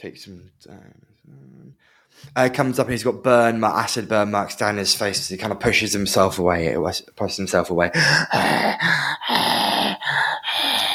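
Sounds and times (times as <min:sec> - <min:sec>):
speech: 0:00.0 - 0:10.8
heavy breathing: 0:01.0 - 0:02.4, 0:07.9 - 0:10.9.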